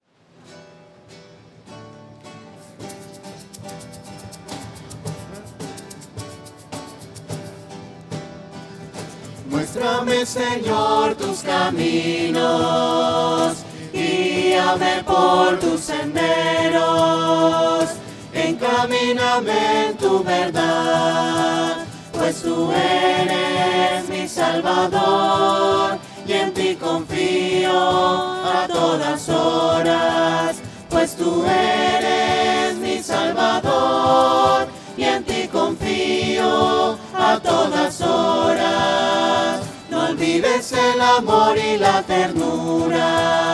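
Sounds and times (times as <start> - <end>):
voices: 9.4 - 43.5.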